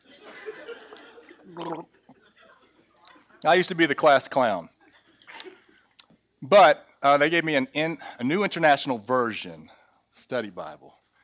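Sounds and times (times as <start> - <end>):
laughter: 0.0 - 3.4
person drinking water: 1.1 - 2.2
speech: 1.6 - 2.0, 3.4 - 4.7, 6.4 - 11.0.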